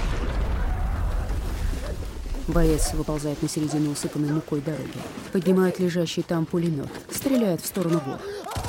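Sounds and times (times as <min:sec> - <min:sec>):
shell burst explosion in a war film: 0:00.0 - 0:02.9
speech: 0:02.5 - 0:08.4.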